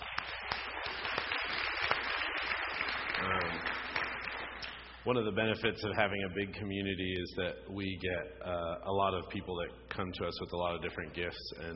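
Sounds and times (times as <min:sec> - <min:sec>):
crowd applause: 0:00.0 - 0:04.8
speech: 0:05.0 - 0:11.7.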